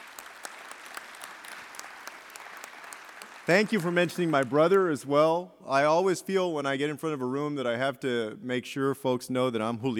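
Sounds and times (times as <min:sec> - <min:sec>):
applause: 0:00.0 - 0:05.1
speech: 0:03.5 - 0:09.9.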